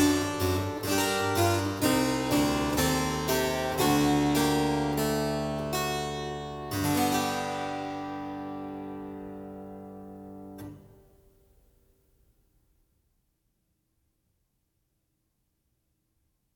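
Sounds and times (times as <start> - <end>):
prelude and fugue in B minor: 0.0 - 10.9.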